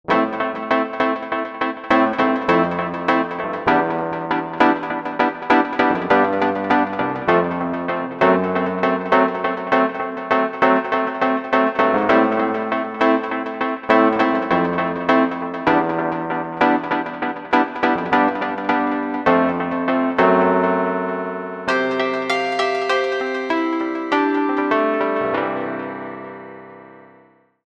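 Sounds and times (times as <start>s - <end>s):
E-mu Proteus VX synthesizer music: 0.1s - 27.2s.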